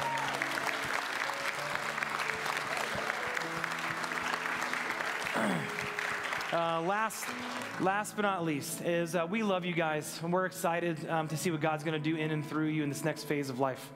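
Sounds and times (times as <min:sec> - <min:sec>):
round of applause: 0:00.0 - 0:08.1
speech: 0:06.5 - 0:13.9.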